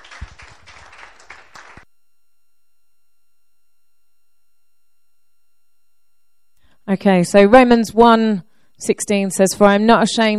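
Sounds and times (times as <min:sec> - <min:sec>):
audience applause: 0:00.0 - 0:01.8
speech: 0:06.9 - 0:10.3.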